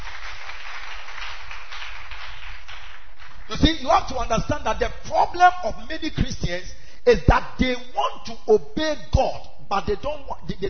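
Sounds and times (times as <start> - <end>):
crowd clapping: 0.0 - 4.2
speech: 3.5 - 10.6.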